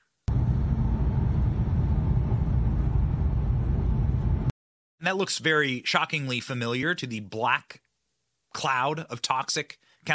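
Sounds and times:
deep roaring rumble: 0.3 - 4.5
explosion at burning manufacturing plant: 0.3 - 4.5
speech: 5.0 - 7.8, 8.5 - 10.1.

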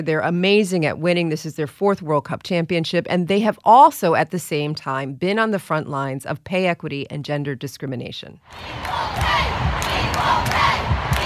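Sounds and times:
speech: 0.0 - 9.5
stadium crowd cheering after soccer final: 8.4 - 11.2.

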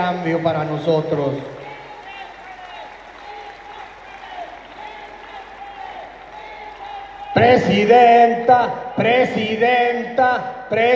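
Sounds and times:
speech: 0.0 - 1.6, 7.4 - 10.9
audience applause: 0.0 - 8.4.

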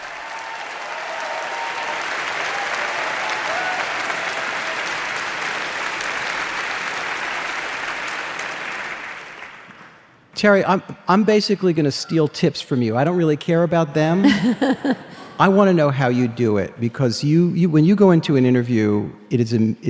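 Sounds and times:
audience applause welcoming guest: 0.0 - 10.1
speech: 10.4 - 19.8
laughter: 14.0 - 16.4.

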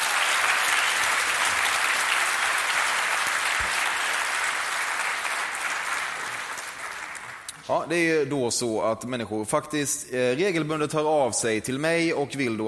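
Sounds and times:
applause: 0.0 - 7.6
speech: 7.7 - 12.6.

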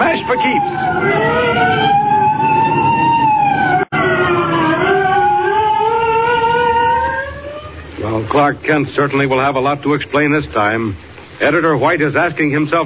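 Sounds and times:
police car sirens wailing: 0.0 - 8.3
speech: 8.5 - 12.8.

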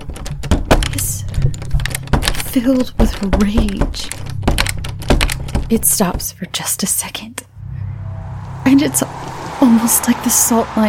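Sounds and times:
locked door handle rattling: 0.0 - 6.5
speech: 2.6 - 4.3, 5.7 - 7.5, 8.7 - 9.1, 9.7 - 10.8.

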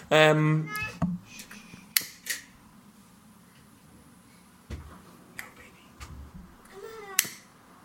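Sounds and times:
adult talking: 0.1 - 1.0
young child babbling: 0.6 - 1.4, 6.7 - 7.3.

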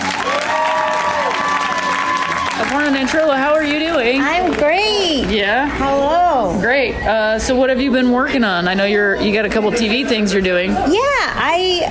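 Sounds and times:
crowd cheering and whooping: 0.0 - 2.9
crowd applauding: 0.0 - 4.8
speech: 2.7 - 11.8.

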